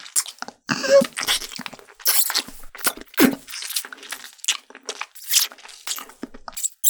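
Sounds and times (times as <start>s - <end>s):
ASMR kissing sounds: 0.7s - 3.4s, 6.6s - 6.8s.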